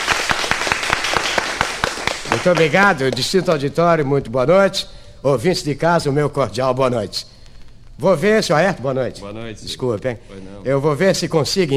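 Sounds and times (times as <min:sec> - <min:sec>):
audience applause: 0:00.0 - 0:03.2
speech: 0:02.4 - 0:07.4, 0:08.0 - 0:11.7.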